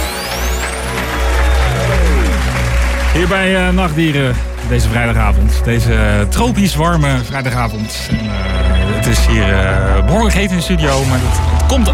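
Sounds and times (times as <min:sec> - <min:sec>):
audience applause: 0:00.0 - 0:06.2
speech: 0:03.2 - 0:11.9.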